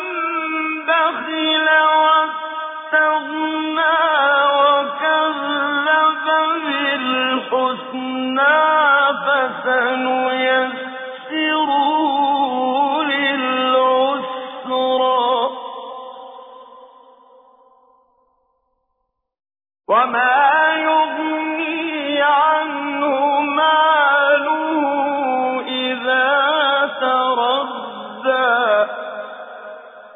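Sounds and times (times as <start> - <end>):
tajweed recitation of a Quran chapter: 0.0 - 17.8, 19.9 - 30.1.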